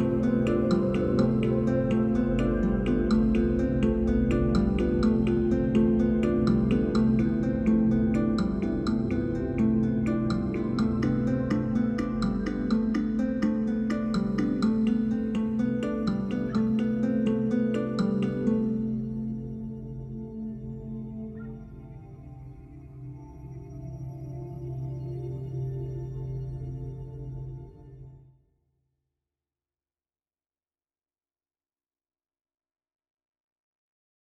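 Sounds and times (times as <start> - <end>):
atmospheric sound: 0.0 - 27.1.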